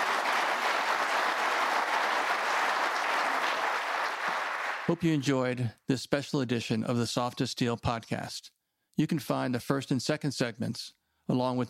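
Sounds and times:
audience applause: 0.0s - 5.0s
speech: 4.9s - 11.6s.

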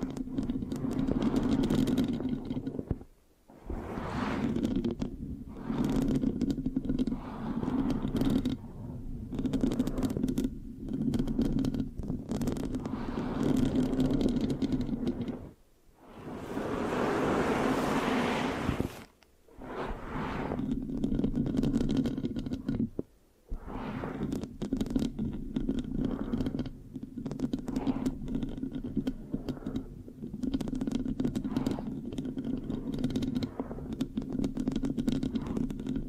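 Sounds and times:
sticky microphone scratching: 0.0s - 36.0s
steady low rumble: 12.8s - 20.6s.

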